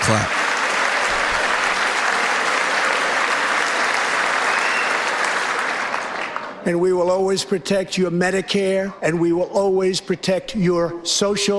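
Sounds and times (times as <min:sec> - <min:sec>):
crowd standing ovation applause: 0:00.0 - 0:06.6
speech: 0:00.1 - 0:00.4, 0:06.6 - 0:11.5.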